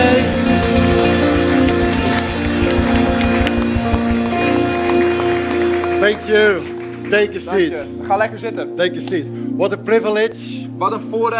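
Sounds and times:
audience applause: 0.6s - 7.2s
speech: 6.1s - 11.3s.

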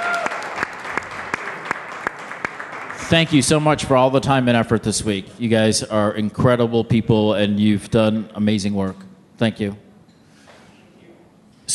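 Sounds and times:
audience applause: 0.0s - 3.4s
speech: 3.1s - 9.8s.

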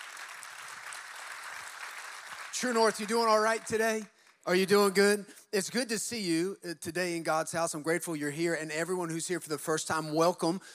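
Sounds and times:
audience clapping: 0.0s - 4.6s
speech: 2.5s - 10.7s.

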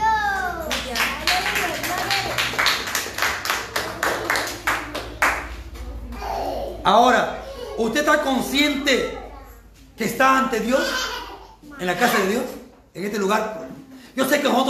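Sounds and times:
audience clapping hands: 0.6s - 6.0s
speech: 6.9s - 9.2s, 10.0s - 11.1s, 11.8s - 13.6s, 14.2s - 14.6s.

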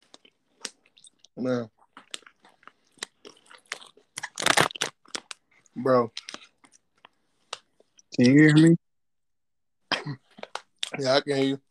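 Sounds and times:
speech: 1.4s - 1.8s, 5.8s - 6.2s, 8.2s - 8.8s, 11.0s - 11.6s
crunching sea salt and vinegar kettle chips: 2.0s - 5.4s.

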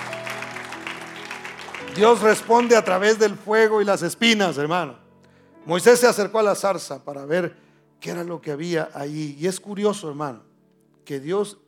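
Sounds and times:
audience applause: 0.0s - 3.4s
speech: 1.8s - 5.0s, 5.6s - 10.5s, 11.1s - 11.6s.

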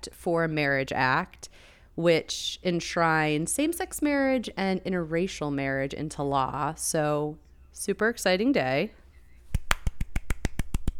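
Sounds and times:
speech: 0.0s - 9.0s
sharp hand claps: 9.5s - 10.9s.

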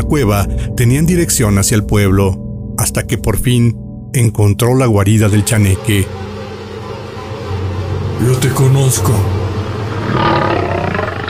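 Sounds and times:
speech: 0.0s - 6.3s, 8.2s - 9.4s
giant dog's fierce howling roar: 5.3s - 11.2s.

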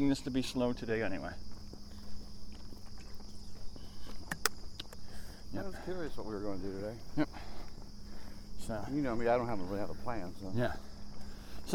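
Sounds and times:
speech: 0.0s - 1.5s, 5.5s - 7.5s, 8.7s - 10.9s
footsteps of a runner on a walk break: 0.0s - 11.7s
sharp clicks: 4.1s - 5.1s.

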